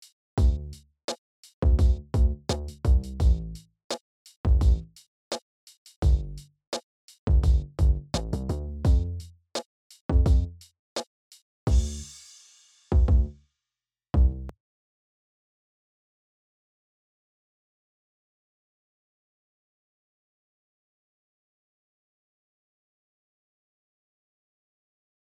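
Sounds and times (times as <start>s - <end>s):
EQed rhythm bass: 0.4s - 0.8s, 1.6s - 3.6s, 4.5s - 5.0s, 6.0s - 6.5s, 7.3s - 9.3s, 10.1s - 10.6s, 11.7s - 12.1s, 12.9s - 13.3s, 14.2s - 14.5s.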